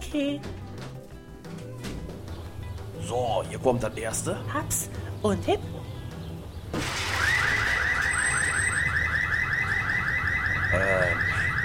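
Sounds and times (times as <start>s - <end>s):
speech: 0.1s - 0.6s, 3.1s - 5.8s
car alarm wailing: 7.0s - 11.6s.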